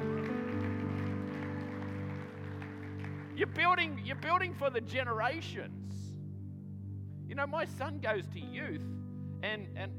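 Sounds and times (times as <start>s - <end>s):
crowd applause: 0.0s - 3.7s
sustained low keyboard chord: 0.0s - 9.9s
speech: 3.4s - 6.0s, 7.3s - 9.9s.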